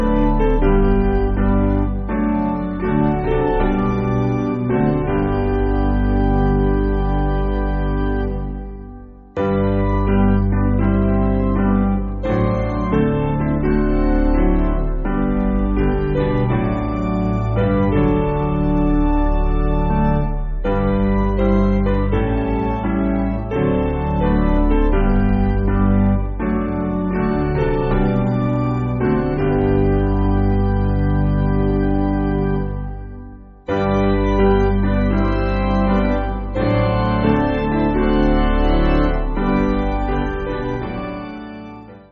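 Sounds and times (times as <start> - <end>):
piano: 0.0 - 42.1.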